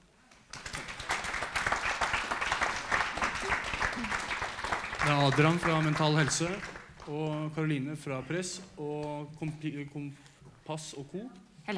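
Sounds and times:
audience applause: 0:00.4 - 0:07.5
speech: 0:05.1 - 0:11.7.

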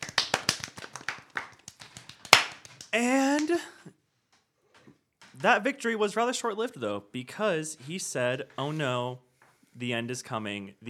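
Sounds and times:
small group clapping: 0:00.0 - 0:03.6
speech: 0:02.9 - 0:04.0, 0:05.4 - 0:10.8.

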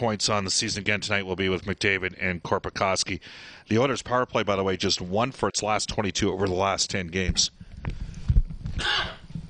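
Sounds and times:
speech: 0:00.0 - 0:07.6, 0:08.8 - 0:09.2
cough: 0:08.8 - 0:09.3.

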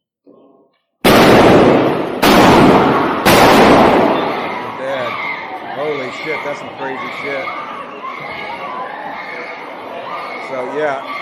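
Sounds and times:
shotgun blasts: 0:01.0 - 0:04.6
speech: 0:06.2 - 0:07.6, 0:10.5 - 0:11.2.

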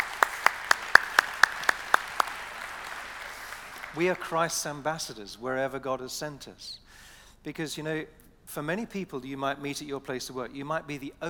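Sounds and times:
audience applause: 0:00.0 - 0:04.6
speech: 0:03.9 - 0:11.2.

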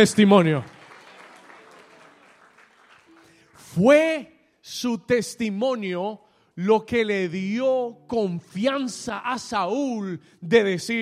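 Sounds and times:
speech: 0:00.0 - 0:00.8, 0:03.8 - 0:11.0
audience applauding: 0:00.0 - 0:03.6.

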